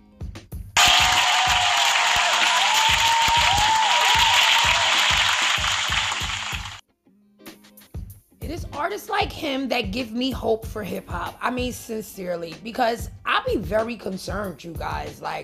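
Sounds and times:
audience applause: 0.8s - 6.8s
speech: 8.9s - 15.4s.

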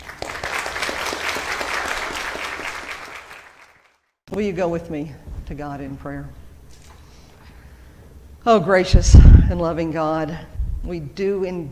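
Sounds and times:
congregation at St. Paul's church applauding: 0.0s - 4.0s
speech: 4.4s - 6.4s, 8.4s - 11.7s.

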